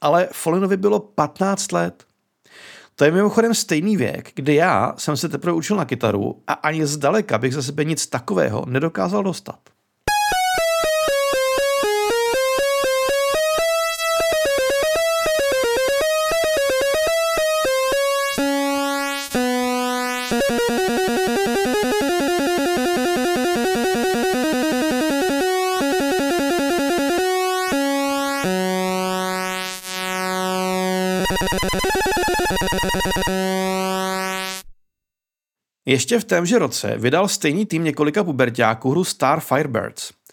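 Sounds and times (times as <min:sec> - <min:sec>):
speech: 0:00.0 - 0:09.8, 0:35.9 - 0:40.2
early home-computer chiptune melody: 0:10.1 - 0:34.6.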